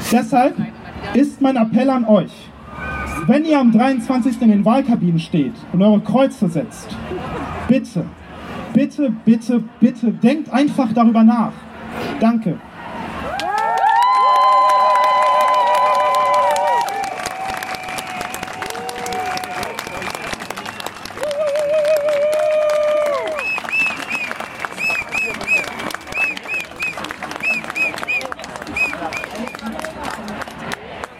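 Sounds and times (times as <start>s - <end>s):
speech: 0.1s - 2.5s, 3.2s - 12.7s
crowd cheering and shouting: 2.6s - 4.8s, 12.7s - 29.5s
crowd applauding after a speech: 13.2s - 31.1s
high whistles from the crowd: 23.3s - 29.6s.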